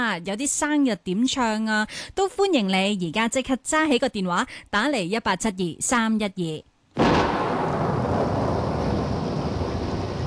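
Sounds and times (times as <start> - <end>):
speech: 0.0 - 7.4
heavy rain: 7.5 - 10.2.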